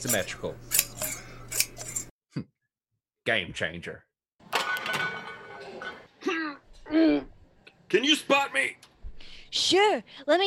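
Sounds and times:
speech: 0.0s - 0.8s, 3.2s - 4.1s, 6.2s - 7.3s, 7.9s - 8.9s, 9.5s - 10.4s
pruning shears snipping hair: 0.0s - 2.1s.

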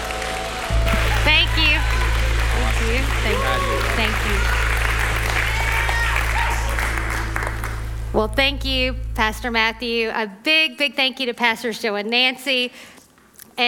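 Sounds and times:
church congregation applauding as a speaker is welcomed: 0.0s - 8.1s
steady low hum: 0.0s - 10.3s
speech: 2.8s - 4.6s, 8.2s - 12.9s.

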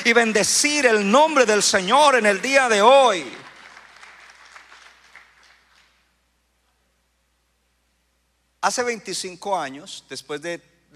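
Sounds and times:
speech: 0.0s - 3.4s, 8.6s - 10.9s
audience applause: 3.4s - 6.0s.

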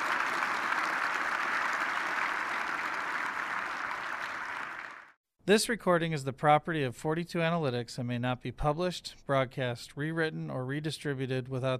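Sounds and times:
audience applause: 0.0s - 5.2s
speech: 5.5s - 11.7s.

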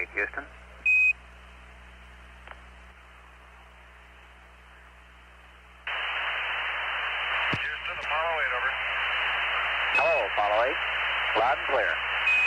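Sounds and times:
speech: 0.0s - 0.6s
radio crackling: 5.9s - 12.4s.

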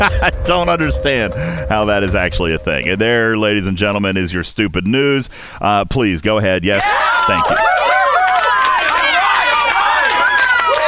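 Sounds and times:
speech: 0.0s - 7.8s
crowd cheering and whooping: 6.8s - 10.8s
scattered clapping: 7.4s - 10.8s.

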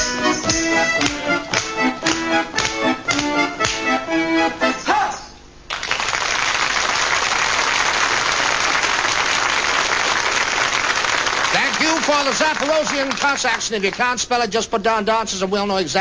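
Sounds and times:
bright rhythmic music: 0.0s - 4.8s
studio audience clapping: 1.0s - 3.8s, 5.7s - 14.2s
speech: 12.3s - 15.9s.

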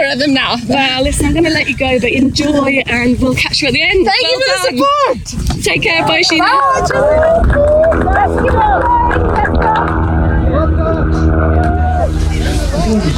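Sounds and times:
crowd babble at the Lewa Safari Marathon finish line in Kenya: 0.0s - 13.1s
speech: 0.1s - 9.0s
sustained tonal sounds at the Lewa Safari Marathon finish line: 6.9s - 13.1s.

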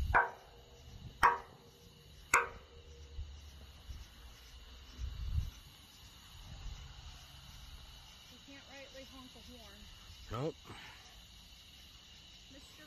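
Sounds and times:
sharp rapping knocks: 0.1s - 0.6s, 1.2s - 1.7s, 2.3s - 2.8s
speech: 9.0s - 11.0s.

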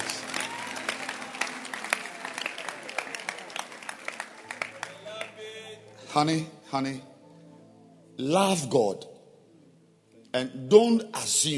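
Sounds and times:
audience clapping hands: 0.0s - 5.7s
speech: 6.2s - 7.1s, 8.2s - 9.1s, 10.3s - 11.5s.

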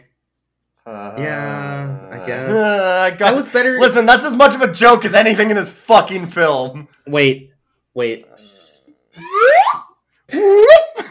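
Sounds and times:
speech: 0.8s - 8.6s
slide whistle swoops: 9.2s - 10.0s.

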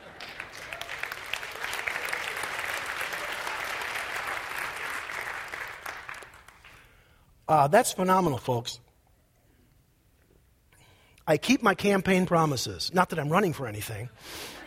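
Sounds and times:
audience applause and cheering: 0.0s - 6.8s
speech: 7.5s - 8.9s, 11.3s - 14.6s.

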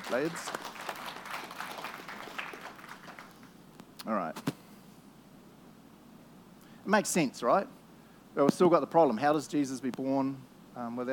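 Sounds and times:
audience applause: 0.0s - 3.6s
speech: 0.1s - 0.7s, 4.0s - 4.5s, 6.9s - 7.8s, 8.4s - 11.1s.

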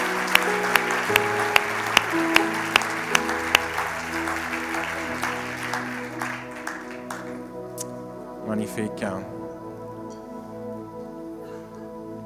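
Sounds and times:
audience applauding: 0.0s - 7.8s
sustained low keyboard chords: 0.0s - 12.2s
speech: 8.8s - 9.4s.

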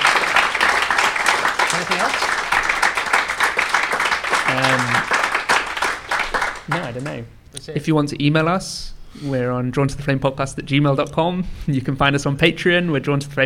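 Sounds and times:
audience applause: 0.0s - 7.2s
speech: 2.0s - 2.4s, 6.8s - 13.4s.

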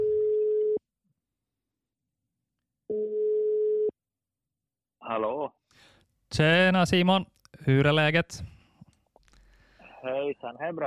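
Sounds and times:
telephone ringing tone on a call to Kalmar, Sweden: 2.9s - 3.9s
speech: 5.1s - 5.6s, 6.3s - 8.6s, 10.0s - 10.8s.

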